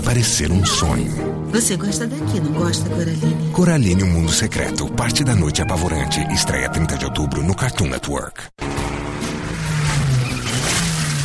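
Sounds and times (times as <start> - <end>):
speech: 0.1 - 8.6
Mitsubishi Lancer engine revving in a TV car advert: 8.6 - 11.2.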